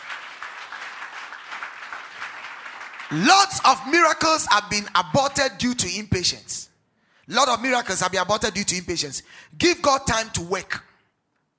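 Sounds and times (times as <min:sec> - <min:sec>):
audience clapping: 0:00.0 - 0:04.2
speech: 0:03.1 - 0:06.7, 0:07.3 - 0:10.9.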